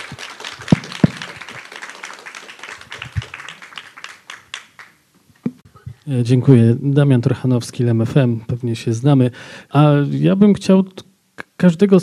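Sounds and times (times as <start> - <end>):
audience applause: 0.0 - 5.0
speech: 6.1 - 12.0.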